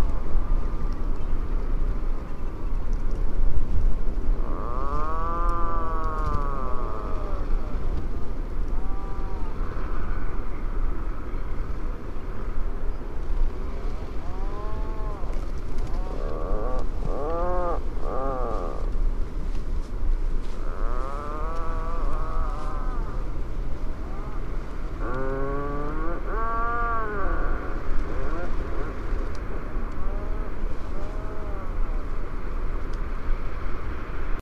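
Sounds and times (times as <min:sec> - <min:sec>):
roar of wind or surf: 0:00.0 - 0:34.4
Atlantic puffin groaning calls: 0:04.4 - 0:08.0, 0:08.6 - 0:10.3, 0:14.1 - 0:19.0, 0:20.4 - 0:32.1.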